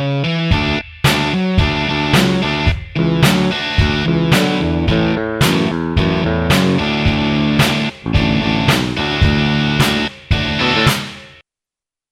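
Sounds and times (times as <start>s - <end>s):
intro backing track: 0.2s - 11.4s.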